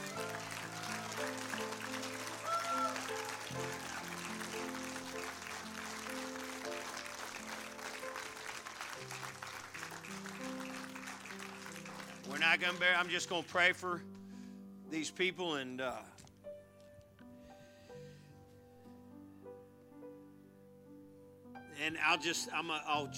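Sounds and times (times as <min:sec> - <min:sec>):
audience applause: 0:00.0 - 0:13.5
speech: 0:12.4 - 0:14.2, 0:14.9 - 0:16.2, 0:22.1 - 0:23.1.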